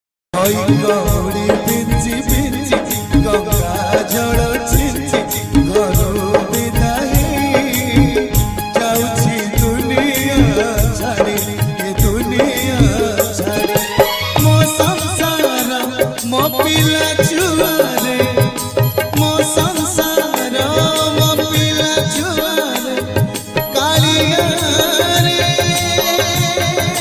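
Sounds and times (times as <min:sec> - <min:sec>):
Odia Jagannath bhajan ringtone: 0:00.4 - 0:26.9.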